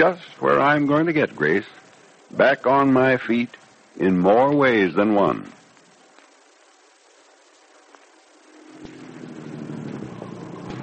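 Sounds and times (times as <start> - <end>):
speech: 0.0 - 5.6
car engine droning while driving: 8.5 - 10.8.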